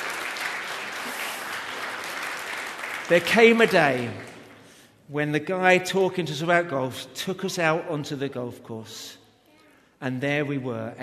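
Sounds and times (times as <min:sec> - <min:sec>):
applause from an audience: 0:00.0 - 0:04.6
speech: 0:03.1 - 0:04.3, 0:05.1 - 0:09.2, 0:10.0 - 0:11.0.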